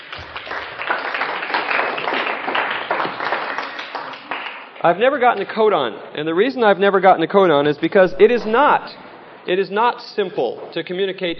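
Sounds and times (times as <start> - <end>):
audience applause: 0.0 - 4.8
speech: 4.8 - 11.3.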